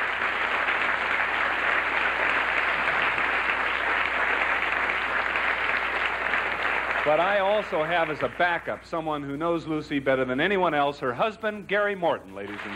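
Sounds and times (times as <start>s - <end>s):
audience applause: 0.0s - 8.8s, 12.5s - 12.7s
speech: 7.1s - 12.7s.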